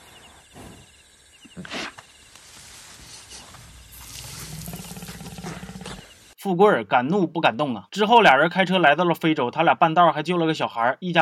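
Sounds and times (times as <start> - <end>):
hiss: 0.0 - 6.5
lioness low rumbling growls: 3.3 - 6.3
lioness roaring: 3.9 - 6.1
speech: 6.4 - 11.2.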